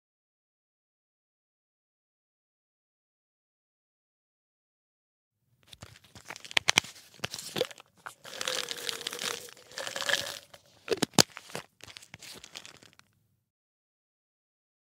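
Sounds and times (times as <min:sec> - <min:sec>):
pill bottle rattling: 0:05.7 - 0:13.1.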